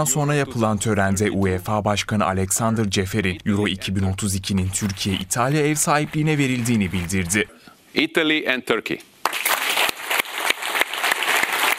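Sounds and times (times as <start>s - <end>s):
speech: 0.0s - 9.1s
audience applause at a ceremony: 9.2s - 11.7s.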